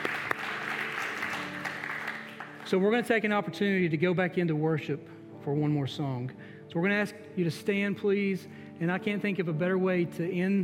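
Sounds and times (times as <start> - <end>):
audience clapping: 0.0 - 3.2
speech: 2.7 - 10.6.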